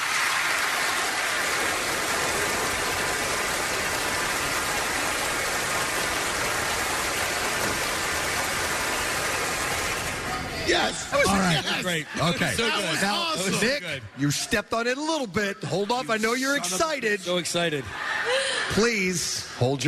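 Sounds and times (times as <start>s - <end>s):
polite applause from studio audience: 0.0s - 13.7s
speech: 10.8s - 19.8s
laughter: 17.8s - 19.2s.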